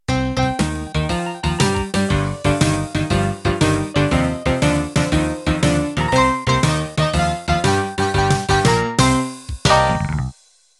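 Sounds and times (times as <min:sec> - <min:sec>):
rockabilly music: 0:00.1 - 0:10.4.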